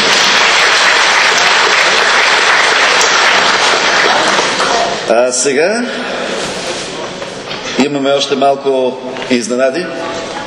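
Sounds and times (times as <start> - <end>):
audience applause: 0.0 - 4.9
speech: 5.3 - 6.3, 7.8 - 10.0.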